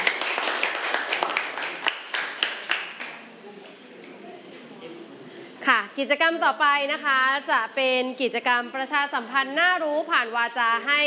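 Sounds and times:
classroom applause: 0.0 - 3.3
speech: 6.0 - 11.0.

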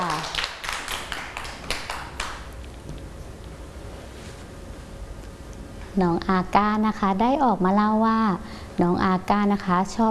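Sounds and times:
children clapping: 0.0 - 2.5
speech: 6.0 - 10.0.

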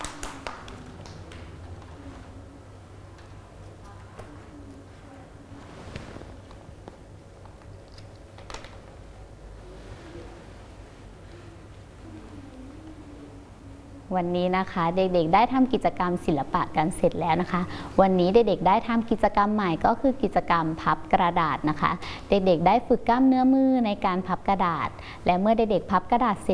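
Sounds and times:
children clapping hands: 0.0 - 1.9
speech: 14.1 - 26.5.

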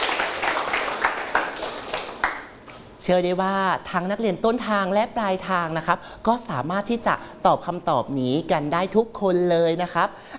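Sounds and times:
class of students applauding a fellow student in a classroom: 0.0 - 2.8
speech: 3.0 - 10.3.

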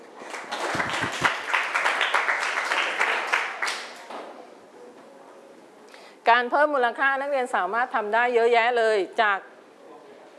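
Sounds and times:
classroom applause: 0.2 - 4.1
speech: 6.3 - 9.5.

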